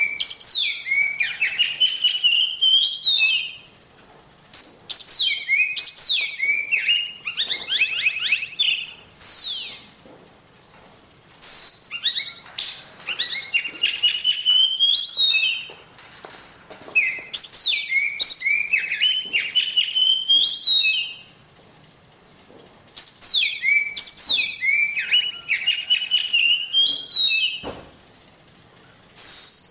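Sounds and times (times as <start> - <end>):
oriental magpie-robin singing: 0.0 - 3.7, 4.6 - 10.0, 11.4 - 15.7, 16.9 - 21.3, 23.0 - 27.7, 28.8 - 29.6.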